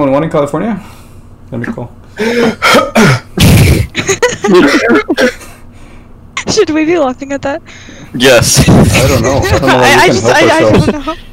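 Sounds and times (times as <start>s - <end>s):
speech: 0.0s - 3.2s, 4.0s - 5.3s, 6.5s - 11.3s
choking cough: 2.2s - 5.6s, 8.8s - 9.7s
laughter: 3.9s - 5.2s, 8.6s - 11.2s.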